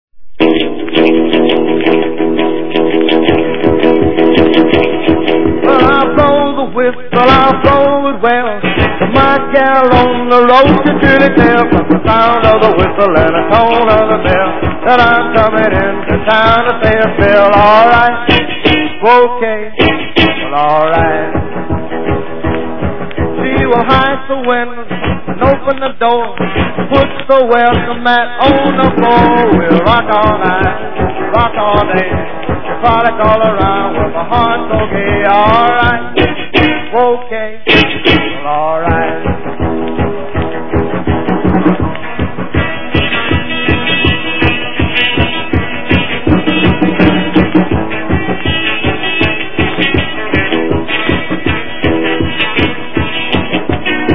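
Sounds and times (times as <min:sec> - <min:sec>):
boogie music: 0:00.2 - 0:54.1.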